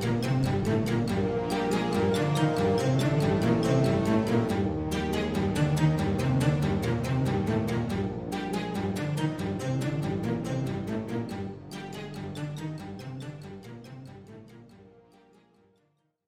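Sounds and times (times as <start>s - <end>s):
person singing: 0.0s - 11.1s.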